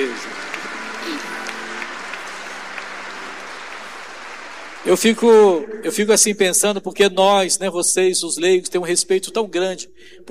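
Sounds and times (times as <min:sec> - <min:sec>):
audience applause: 0:00.0 - 0:05.6
speech: 0:04.9 - 0:10.2.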